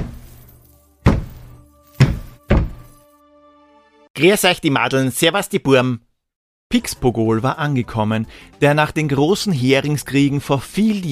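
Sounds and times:
heavy footsteps: 0.0s - 3.0s
speech: 4.2s - 6.1s, 6.7s - 11.1s.

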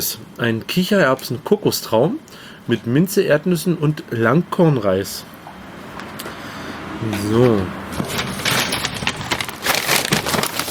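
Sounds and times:
speech: 0.0s - 5.4s, 7.0s - 8.2s
paper-and-plastic meal kit bag being torn open: 8.9s - 10.6s.

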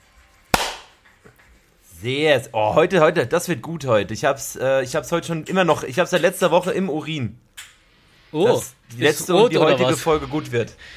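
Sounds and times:
single hand clap marking recording start: 0.6s - 1.2s
speech: 2.0s - 7.5s, 8.3s - 10.9s.

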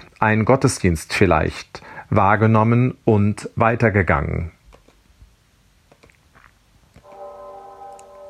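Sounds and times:
speech: 0.2s - 4.6s
church bells ringing Friday afternoon toll: 7.0s - 8.2s.

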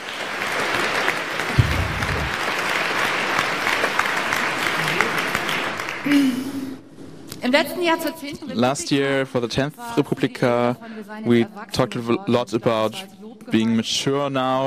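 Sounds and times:
crowd applauding: 0.0s - 6.8s
speech: 6.0s - 6.4s, 7.4s - 14.6s.

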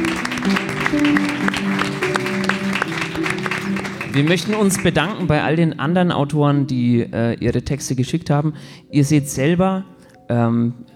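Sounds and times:
audience applause: 0.0s - 5.4s
speech: 0.4s - 2.0s, 4.2s - 10.9s.

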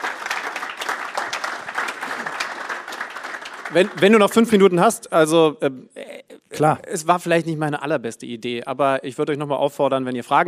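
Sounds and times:
audience clapping: 0.0s - 4.9s
speech: 3.7s - 10.4s.

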